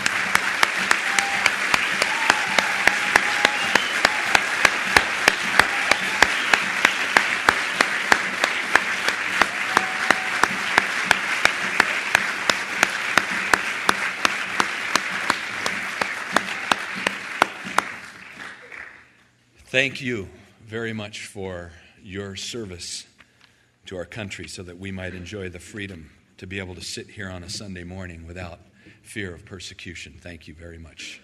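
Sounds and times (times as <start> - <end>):
crowd applauding: 0.0 - 19.2
speech: 19.8 - 23.1, 23.9 - 31.2.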